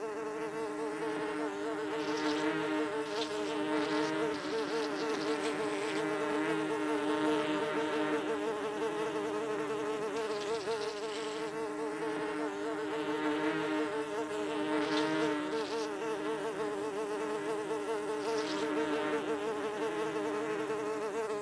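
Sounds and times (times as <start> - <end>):
fly buzzing: 0.0 - 21.4.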